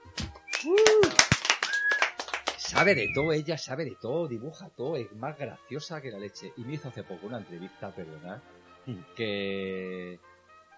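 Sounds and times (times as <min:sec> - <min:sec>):
applause: 0:00.5 - 0:03.2
speech: 0:02.7 - 0:10.3.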